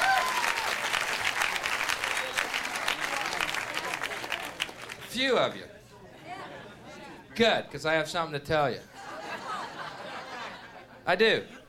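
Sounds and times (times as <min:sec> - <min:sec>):
audience applause: 0:00.0 - 0:05.1
speech: 0:05.2 - 0:05.7, 0:07.4 - 0:08.9, 0:11.1 - 0:11.6
laughter: 0:08.9 - 0:11.6.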